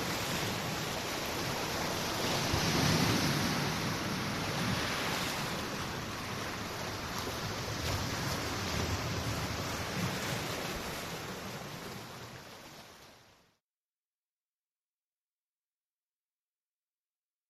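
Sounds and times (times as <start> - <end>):
sea waves in summer: 0.0 - 13.6.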